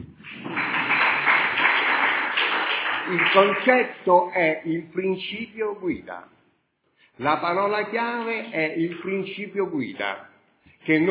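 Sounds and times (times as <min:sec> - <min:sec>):
audience applause: 0:00.0 - 0:04.0
speech: 0:03.1 - 0:06.4, 0:07.2 - 0:11.0.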